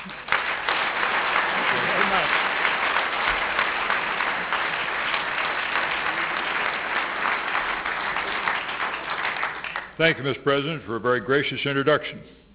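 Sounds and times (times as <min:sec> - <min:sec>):
audience applause at the National Press Club: 0:00.0 - 0:10.0
speech: 0:10.0 - 0:12.4.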